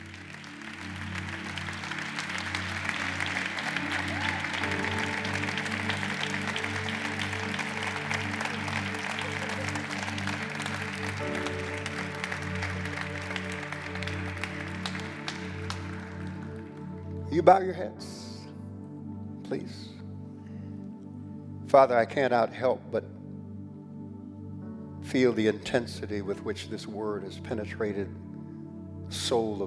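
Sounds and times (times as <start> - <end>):
audience clapping hands: 0.0 - 17.5
speech: 17.4 - 18.1, 21.7 - 23.1, 25.1 - 28.2, 29.3 - 29.6.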